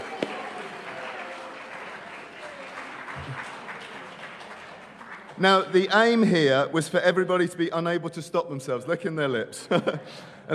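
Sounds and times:
audience clapping: 0.0s - 6.4s
speech: 5.4s - 10.5s.

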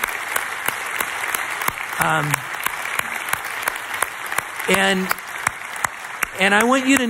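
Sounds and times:
church audience applauding: 0.0s - 7.0s
speech: 2.0s - 2.5s, 4.7s - 5.2s, 6.4s - 7.0s.

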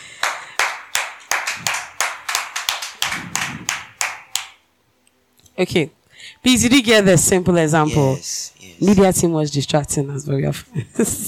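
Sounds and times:
audience clapping: 0.0s - 4.6s
speech: 5.6s - 11.2s.

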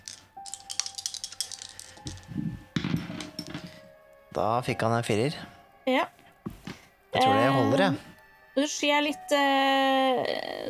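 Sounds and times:
dice rolling: 0.0s - 3.9s
speech: 4.4s - 6.2s, 7.2s - 10.6s.

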